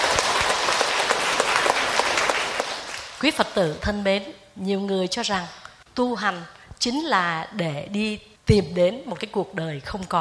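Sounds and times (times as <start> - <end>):
crowd audience applause: 0.0 - 3.2
speech: 3.2 - 10.1.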